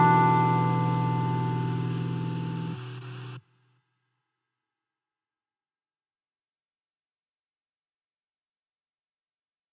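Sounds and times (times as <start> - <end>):
blues music: 0.0 - 3.4.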